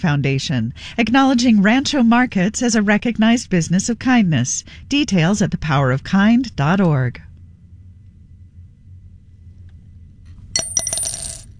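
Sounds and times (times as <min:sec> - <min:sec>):
speech: 0:00.0 - 0:07.3
single quarter coin dropping into a jar: 0:10.4 - 0:11.5.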